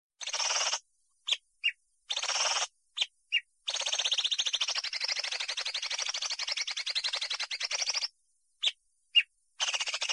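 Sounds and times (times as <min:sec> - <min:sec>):
greater green leafbird singing: 0:00.2 - 0:10.1.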